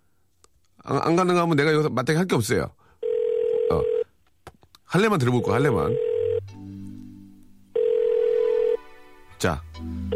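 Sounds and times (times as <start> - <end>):
speech: 0.8 - 2.8, 3.7 - 4.0, 4.9 - 6.1, 9.4 - 10.1
telephone dialing and ringing tone: 5.9 - 6.4, 7.8 - 8.8.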